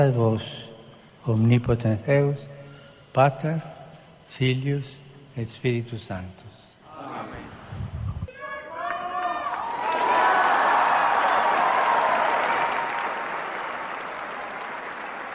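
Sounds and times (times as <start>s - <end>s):
speech: 0.0s - 2.5s, 3.2s - 6.6s
sung or chanted voice: 6.8s - 8.7s
large crowd applause: 8.8s - 15.3s.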